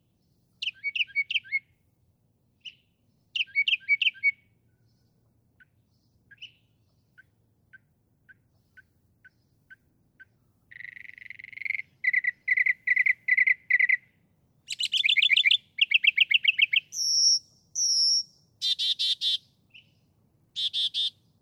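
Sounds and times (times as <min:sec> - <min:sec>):
Northern mockingbird singing: 0:00.6 - 0:01.6, 0:02.6 - 0:04.4, 0:05.6 - 0:14.1, 0:14.7 - 0:20.0.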